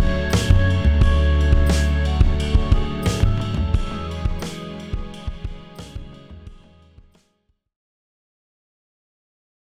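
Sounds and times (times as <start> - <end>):
organ: 0.0 - 6.5.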